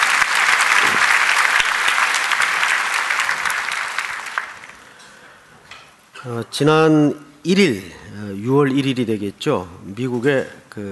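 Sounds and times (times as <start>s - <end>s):
audience applauding the choir: 0.0s - 5.0s
speech: 6.2s - 10.9s.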